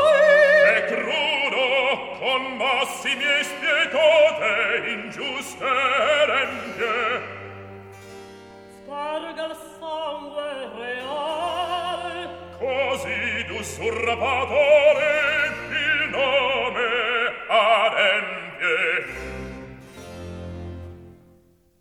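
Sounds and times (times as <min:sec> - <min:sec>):
Baroque recitative singing: 0:00.0 - 0:21.1.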